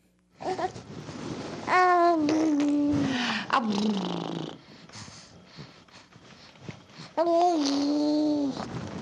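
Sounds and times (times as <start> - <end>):
infant gooing vocalizations: 0.4 - 0.8, 1.6 - 4.7, 7.2 - 8.7.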